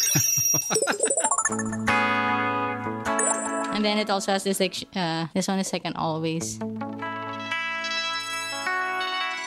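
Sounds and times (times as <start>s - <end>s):
bell-like effect from a guitar pedal: 0.1s - 4.1s, 7.1s - 9.4s
speech: 3.8s - 6.8s.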